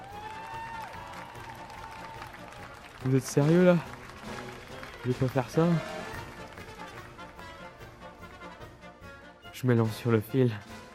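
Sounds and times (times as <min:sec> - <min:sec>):
audience applause in circus tent: 0:00.0 - 0:08.0
speech: 0:03.0 - 0:03.9, 0:05.0 - 0:05.9, 0:09.6 - 0:10.8.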